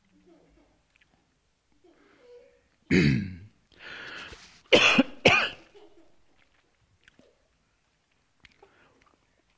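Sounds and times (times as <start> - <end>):
dry tickly coughing and throat-clearing: 2.9 - 3.5, 4.7 - 5.7.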